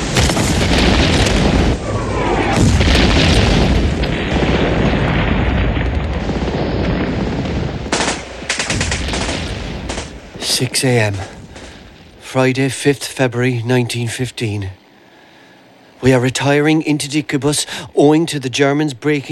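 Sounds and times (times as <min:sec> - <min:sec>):
large French artillery battery firing: 0:00.0 - 0:12.3
speech: 0:10.6 - 0:11.4, 0:12.3 - 0:14.8, 0:16.0 - 0:19.3.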